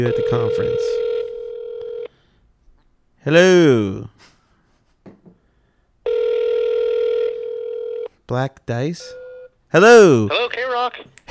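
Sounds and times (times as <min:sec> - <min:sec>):
speech: 0:00.0 - 0:01.0, 0:03.2 - 0:04.3, 0:08.3 - 0:11.2
phone line ringing on a call: 0:00.0 - 0:02.1, 0:06.1 - 0:08.2, 0:09.0 - 0:09.6.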